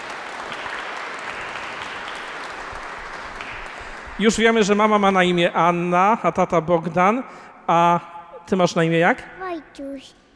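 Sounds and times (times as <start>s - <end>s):
audience applause: 0.0s - 4.8s
speech: 4.2s - 10.2s.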